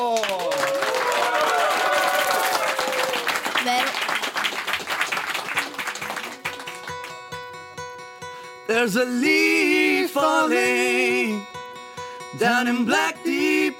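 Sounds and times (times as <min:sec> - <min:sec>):
audience applause: 0:00.0 - 0:07.2
speech: 0:08.8 - 0:11.6, 0:12.4 - 0:13.3.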